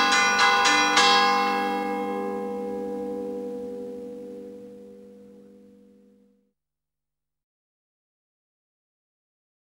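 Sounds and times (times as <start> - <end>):
bells ringing: 0.0 - 6.2.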